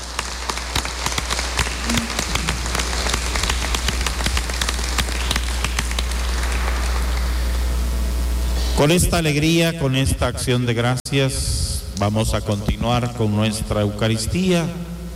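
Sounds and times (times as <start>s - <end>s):
audience applauding: 0.0s - 7.6s
low hum: 0.0s - 15.1s
speech: 8.8s - 14.9s.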